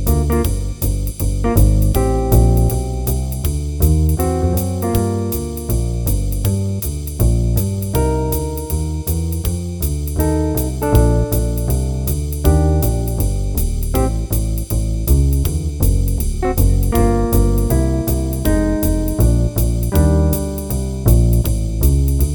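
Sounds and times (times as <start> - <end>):
play-along music at qn 160: 0.0 - 22.2.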